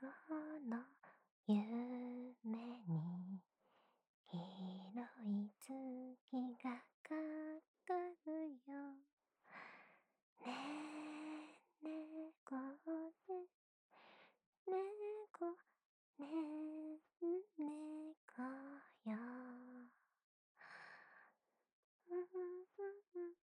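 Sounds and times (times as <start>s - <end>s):
lullaby: 0.0s - 3.5s, 4.3s - 9.0s, 10.4s - 14.1s, 14.7s - 15.6s, 16.2s - 20.0s, 22.0s - 23.4s.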